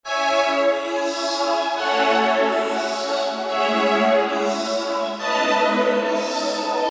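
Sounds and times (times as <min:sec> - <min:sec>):
string melody: 0:00.1 - 0:06.9.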